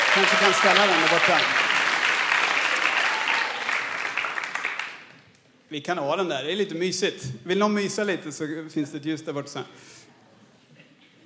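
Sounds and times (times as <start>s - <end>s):
audience applause: 0.0s - 5.2s
speech: 0.2s - 1.7s, 5.7s - 10.0s.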